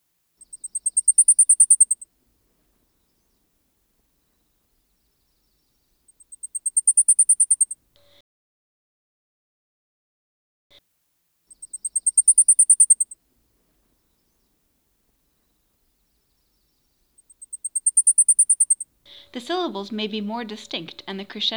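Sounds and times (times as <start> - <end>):
Blackpoll Warbler song: 0.4 - 2.0, 4.2 - 7.8, 11.5 - 13.2, 15.3 - 18.8
speech: 19.3 - 21.5.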